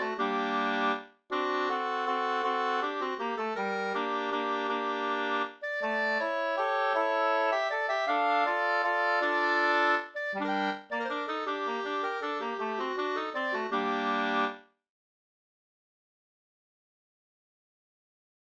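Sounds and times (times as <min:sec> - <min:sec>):
waltz music: 0:00.0 - 0:14.6.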